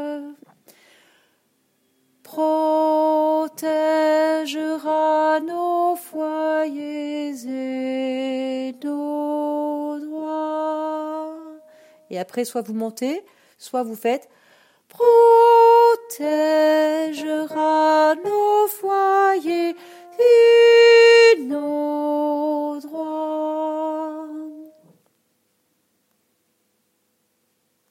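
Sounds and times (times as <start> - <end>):
soprano singing: 0.0 - 0.4, 2.2 - 13.2, 14.9 - 24.9.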